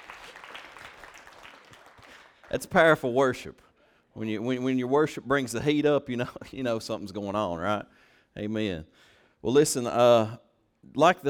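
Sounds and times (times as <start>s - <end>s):
audience clapping in praise: 0.0s - 3.0s
speech: 2.5s - 11.2s.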